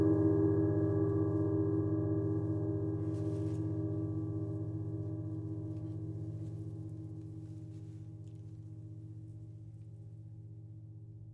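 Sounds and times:
deep gong ringing: 0:00.0 - 0:07.4.

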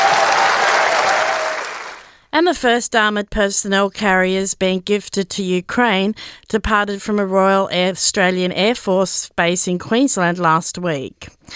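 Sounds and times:
audience applause: 0:00.0 - 0:02.1
speech: 0:02.4 - 0:11.5.

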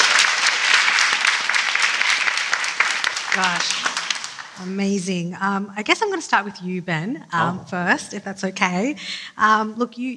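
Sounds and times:
audience applause welcoming a TV director onto a panel: 0:00.0 - 0:04.7
speech: 0:03.4 - 0:03.8, 0:04.6 - 0:10.1.

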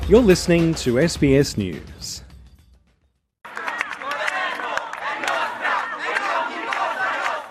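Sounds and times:
speech: 0:00.1 - 0:02.2
citizens of Palermo shouting outside the prosecutor's office: 0:03.5 - 0:07.4.

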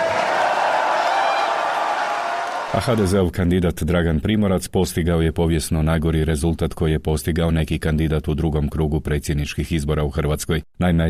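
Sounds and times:
audience applause at an HDZ political gathering: 0:00.0 - 0:03.2
crowd noise: 0:00.0 - 0:03.2
speech: 0:02.7 - 0:11.0.

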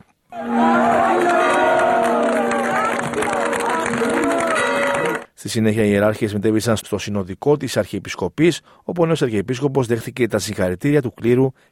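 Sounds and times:
speech: 0:00.3 - 0:00.6, 0:05.4 - 0:11.6
crowd of faithful shouting acclamation: 0:00.3 - 0:05.3.

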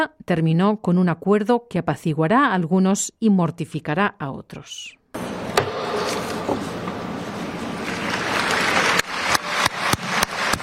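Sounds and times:
speech: 0:00.0 - 0:05.0
gavel knock at COP30 signing: 0:05.5 - 0:06.2
crowd applause: 0:07.1 - 0:10.6.

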